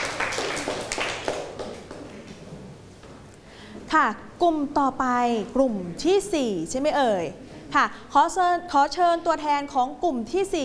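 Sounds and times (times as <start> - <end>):
group clapping hands: 0.0 - 2.4
speech: 3.9 - 10.6.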